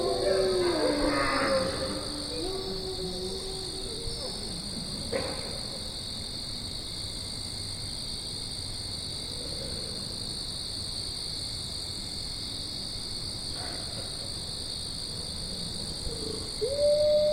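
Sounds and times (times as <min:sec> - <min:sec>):
group of wolves howling: 0:00.0 - 0:05.4, 0:15.6 - 0:17.3.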